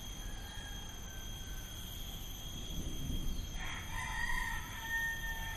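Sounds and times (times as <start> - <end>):
rooster crowing: 0.2 - 2.2, 3.5 - 5.5.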